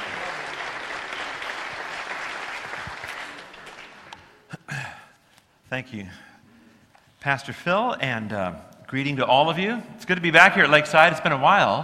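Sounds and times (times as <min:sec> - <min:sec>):
church congregation at Lakeside applauding a guest speaker: 0:00.0 - 0:04.5
speech: 0:05.7 - 0:06.3, 0:07.2 - 0:11.8.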